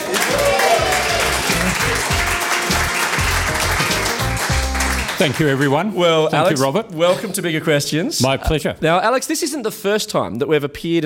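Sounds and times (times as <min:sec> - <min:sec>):
audience applause welcoming a guest to a public conversation: 0:00.0 - 0:05.9
speech: 0:05.2 - 0:11.0.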